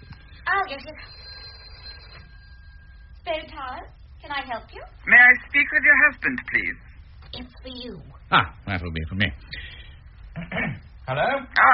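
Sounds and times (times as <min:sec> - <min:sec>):
telephone ringing: 0:00.0 - 0:03.7
speech: 0:00.5 - 0:01.3, 0:03.3 - 0:09.6, 0:10.4 - 0:11.7.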